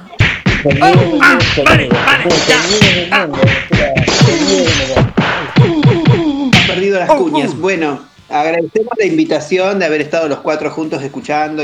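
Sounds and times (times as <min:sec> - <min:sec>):
punch sound effects: 0:00.2 - 0:06.9
speech: 0:00.6 - 0:06.0, 0:06.9 - 0:11.6.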